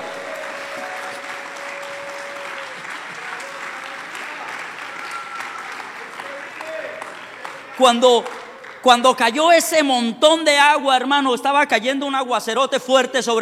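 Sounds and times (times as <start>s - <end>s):
loud applause from church audience: 0.0s - 9.3s
speech: 7.8s - 13.4s.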